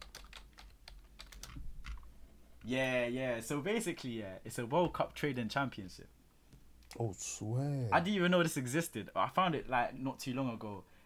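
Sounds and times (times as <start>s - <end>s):
typing on a computer keyboard: 0.0s - 2.0s
speech: 2.6s - 6.2s, 7.0s - 10.9s.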